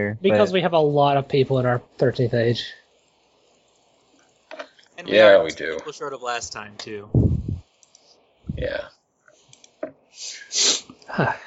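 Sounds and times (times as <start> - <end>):
speech: 0.0 - 2.8, 5.0 - 7.2, 8.5 - 9.0, 10.2 - 11.4
person sniffling: 10.2 - 11.4.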